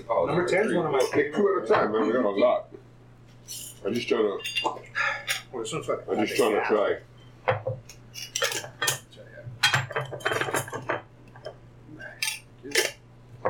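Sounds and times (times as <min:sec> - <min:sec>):
speech: 0:00.0 - 0:02.8, 0:03.5 - 0:08.3
glass jars being opened and closed: 0:03.4 - 0:03.8, 0:08.1 - 0:09.0, 0:09.6 - 0:11.5, 0:12.2 - 0:13.4.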